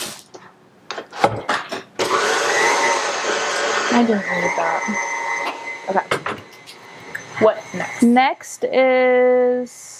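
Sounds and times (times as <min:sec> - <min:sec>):
electric mixer whirring through cake batter with cream cheese: 0:02.0 - 0:08.2
speech: 0:04.0 - 0:05.1, 0:05.9 - 0:06.2, 0:07.4 - 0:09.9.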